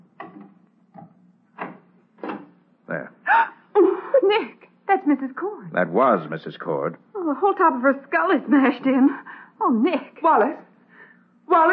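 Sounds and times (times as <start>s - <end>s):
door being opened: 0.2s - 2.6s
speech: 5.1s - 10.7s, 11.5s - 11.7s.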